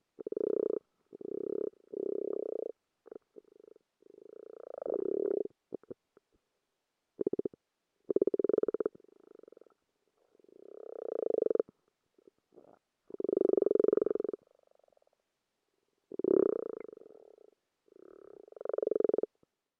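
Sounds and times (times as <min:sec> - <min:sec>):
frog in a garden pond via hydrophone: 0:00.2 - 0:06.0, 0:07.2 - 0:09.8, 0:10.6 - 0:11.7, 0:12.6 - 0:15.1, 0:16.1 - 0:19.4.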